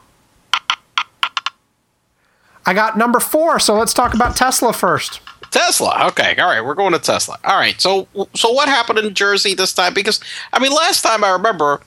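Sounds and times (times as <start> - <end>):
speech: 2.7 - 11.8
four-sided die clattering as it is rolled: 3.7 - 5.5.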